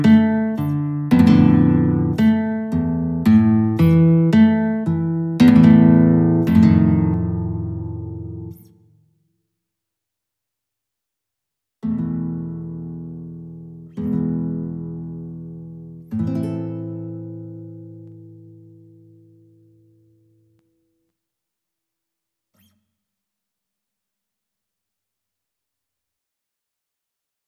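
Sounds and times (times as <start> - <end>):
guitar in E minor: 0.0 - 9.1, 11.8 - 21.1, 22.6 - 22.9.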